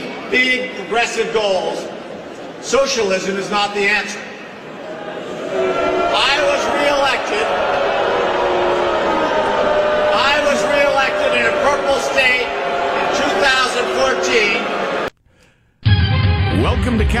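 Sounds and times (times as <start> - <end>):
speech: 0.3 - 2.0, 2.6 - 4.3, 5.5 - 7.8, 13.4 - 14.7, 16.8 - 17.1
large crowd booing: 4.7 - 15.1.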